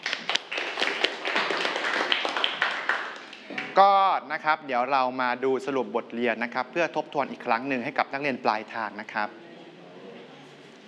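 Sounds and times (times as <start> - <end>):
students clapping: 0.0 - 3.8
speech: 3.8 - 9.4.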